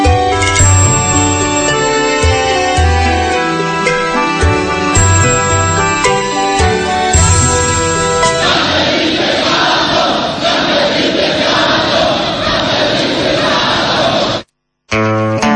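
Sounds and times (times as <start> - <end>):
tonal music-like sound: 0.4 - 9.4
crowd shouting: 5.9 - 14.5.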